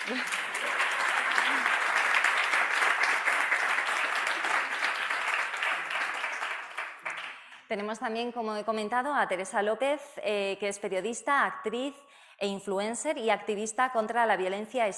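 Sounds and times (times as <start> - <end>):
audience applause: 0.0 - 7.5
speech: 0.1 - 0.4, 7.7 - 14.9.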